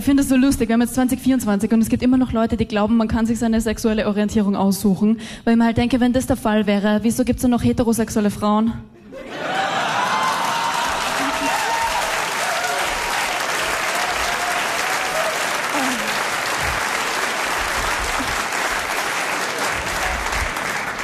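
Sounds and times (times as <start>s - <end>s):
speech: 0.0s - 9.7s
faint cheers and laughter: 9.2s - 16.3s
audience applause: 9.2s - 21.0s.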